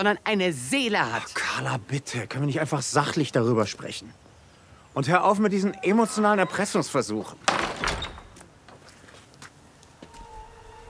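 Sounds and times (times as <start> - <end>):
speech: 0.0 - 4.2, 5.0 - 7.7
stable door on a farm banging: 7.4 - 8.4.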